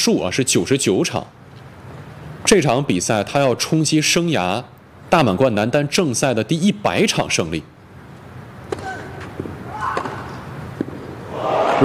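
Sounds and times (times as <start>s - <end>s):
speech: 0.0s - 1.4s, 2.4s - 7.8s
tennis racket hitting ball on backhand return of serve: 8.6s - 11.2s.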